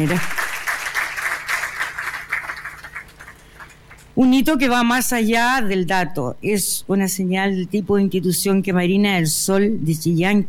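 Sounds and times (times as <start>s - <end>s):
speech: 0.0s - 0.4s, 4.2s - 10.4s
audience applause: 0.0s - 4.0s.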